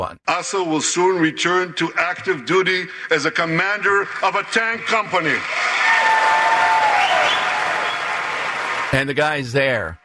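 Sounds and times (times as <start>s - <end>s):
speech: 0.0s - 5.9s, 8.9s - 10.0s
applause in congressional chamber: 3.6s - 9.4s.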